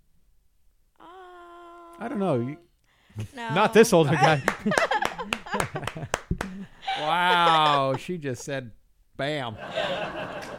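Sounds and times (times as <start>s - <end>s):
speech: 2.0s - 10.5s
laughter: 3.2s - 8.2s, 9.6s - 10.5s
clapping: 4.3s - 6.6s, 10.4s - 10.5s.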